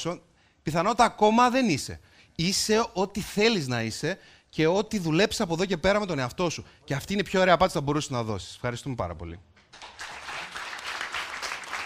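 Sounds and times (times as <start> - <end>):
speech: 0.0 - 10.0
audience applause: 9.8 - 11.8.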